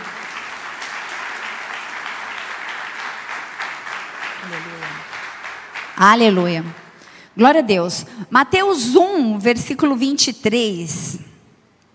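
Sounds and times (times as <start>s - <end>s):
audience applause: 0.0s - 7.2s
speech: 6.0s - 6.8s, 7.4s - 11.2s.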